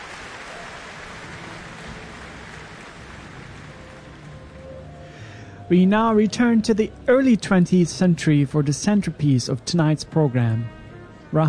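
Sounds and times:
warm audience applause after orchestral performance: 0:00.0 - 0:05.1
speech: 0:05.7 - 0:11.4.

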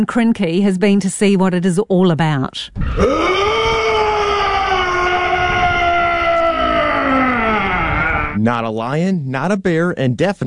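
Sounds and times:
speech: 0:00.0 - 0:03.4, 0:08.4 - 0:10.4
person imitating a hodag's call: 0:03.0 - 0:08.4.

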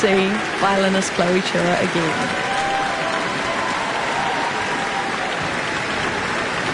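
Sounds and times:
speech: 0:00.0 - 0:02.5
concert audience applause and cheering: 0:00.0 - 0:06.7.

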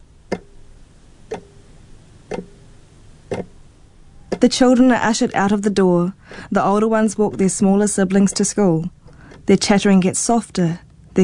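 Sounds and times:
clock ticking: 0:00.3 - 0:00.7, 0:01.3 - 0:01.6, 0:02.2 - 0:03.6, 0:07.1 - 0:09.8
speech: 0:04.4 - 0:11.2.

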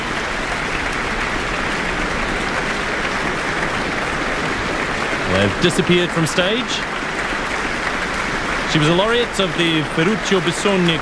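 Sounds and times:
concert hall audience applause in the Auckland Town Hall: 0:00.0 - 0:11.0
speech: 0:05.4 - 0:07.0, 0:08.7 - 0:11.0.

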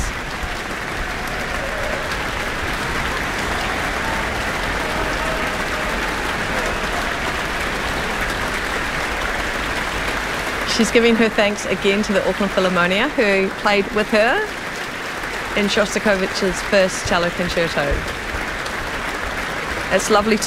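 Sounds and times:
concert audience applause: 0:00.0 - 0:20.4
speech: 0:10.8 - 0:14.6, 0:15.6 - 0:18.2, 0:19.9 - 0:20.4.

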